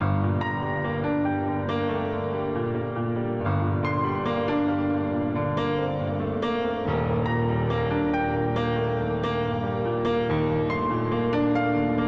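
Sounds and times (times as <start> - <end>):
piano: 0.0 - 12.0.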